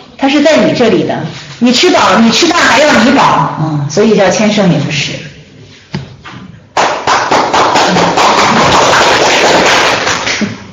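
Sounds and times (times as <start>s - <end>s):
speech: 0.2s - 5.3s
audience clapping: 6.7s - 10.7s.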